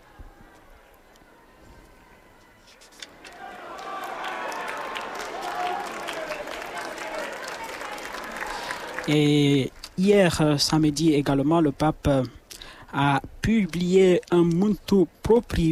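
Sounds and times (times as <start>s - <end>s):
crowd noise: 0.0s - 15.6s
nuns applauding the pope: 3.2s - 9.2s
speech: 9.1s - 15.6s.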